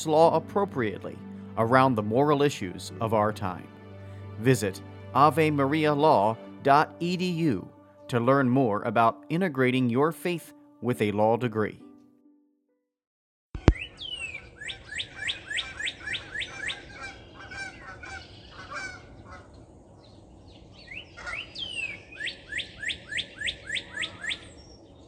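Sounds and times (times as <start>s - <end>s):
speech: 0.0s - 3.8s, 4.4s - 11.8s
birds singing outdoors: 13.6s - 25.0s
geese honking overhead: 14.6s - 19.6s, 21.2s - 24.6s.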